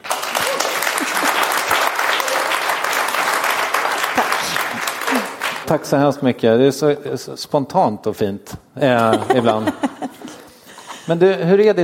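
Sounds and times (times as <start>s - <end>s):
audience applause: 0.0s - 5.8s
laughter: 0.4s - 2.6s, 4.4s - 5.6s, 9.0s - 11.1s
speech: 5.7s - 9.9s, 11.1s - 11.8s.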